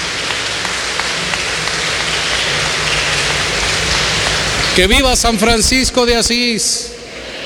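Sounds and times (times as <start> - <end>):
applause: 0.0 - 5.9
speech: 4.8 - 7.0.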